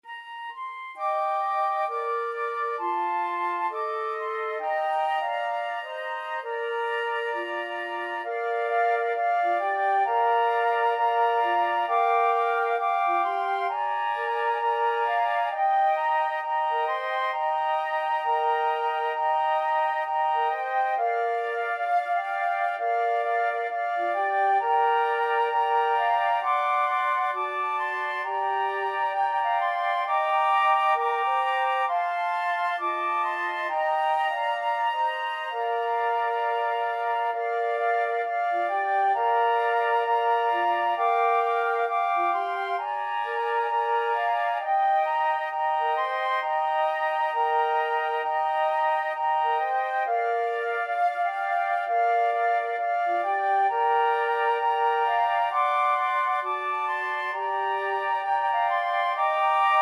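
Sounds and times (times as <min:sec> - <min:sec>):
flute quartet: 0:00.0 - 0:59.8.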